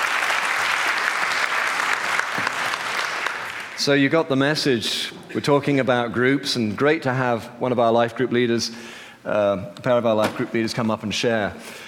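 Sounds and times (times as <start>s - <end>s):
crowd clapping: 0.0s - 4.0s
speech: 3.8s - 11.8s.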